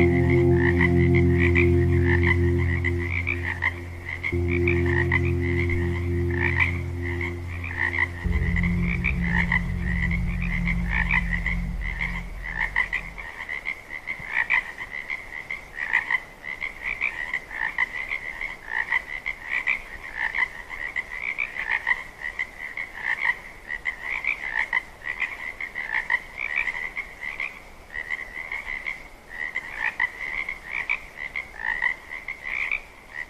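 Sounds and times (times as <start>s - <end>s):
meditation music: 0.0s - 13.3s
frogs: 0.0s - 33.2s.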